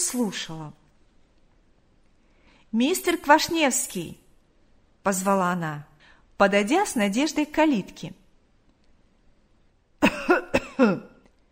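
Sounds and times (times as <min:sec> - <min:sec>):
speech: 0:00.1 - 0:00.8, 0:02.7 - 0:04.2, 0:05.0 - 0:08.2, 0:10.8 - 0:11.1
old man coughing: 0:10.0 - 0:11.2.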